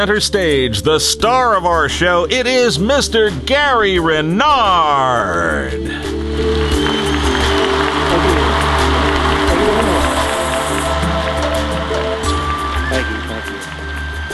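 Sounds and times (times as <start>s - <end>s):
speech: 0.0s - 6.6s
crowd applause: 6.0s - 14.3s.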